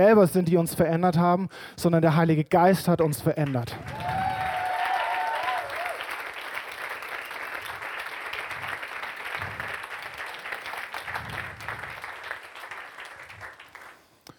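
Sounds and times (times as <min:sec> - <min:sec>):
speech: 0:00.0 - 0:04.0
crowd applause: 0:03.8 - 0:14.0.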